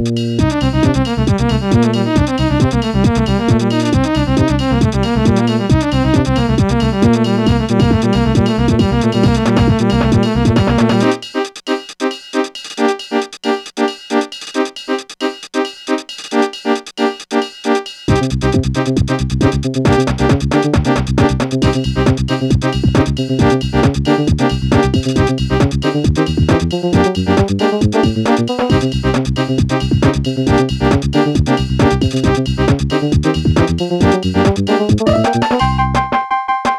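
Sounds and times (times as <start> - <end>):
Bontempi GT 630 electronic keyboard: 0.2 - 36.7.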